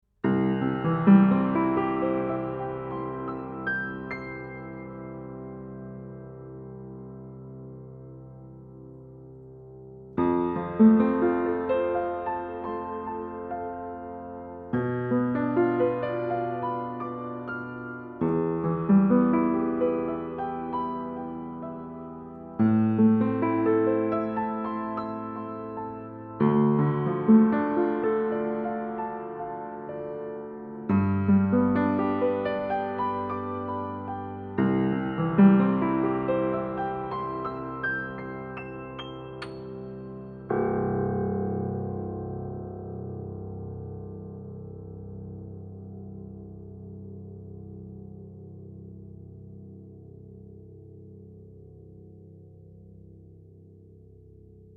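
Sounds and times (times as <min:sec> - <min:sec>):
piano recorded with DPA 4060 microphone: 0:00.0 - 0:54.7.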